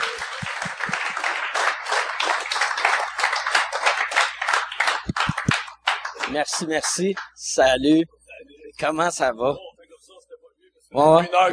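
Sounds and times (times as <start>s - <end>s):
laughter: 0.0s - 1.6s
audience applause: 0.0s - 7.2s
speech: 6.3s - 8.2s, 8.8s - 9.7s, 10.9s - 11.5s.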